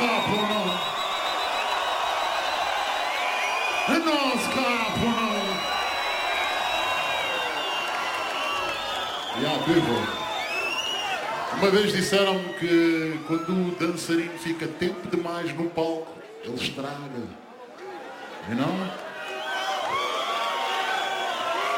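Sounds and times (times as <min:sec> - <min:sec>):
high whistles and whoops: 0:00.0 - 0:11.3, 0:19.2 - 0:21.7
packed concert audience cheering: 0:00.0 - 0:21.7
speech: 0:09.6 - 0:10.1, 0:11.6 - 0:17.4, 0:18.4 - 0:19.0.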